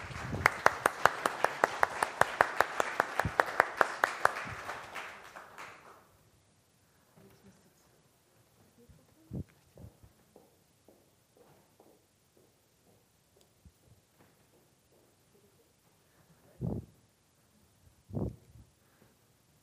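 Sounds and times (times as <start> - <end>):
audience applause: 0.0 - 6.1.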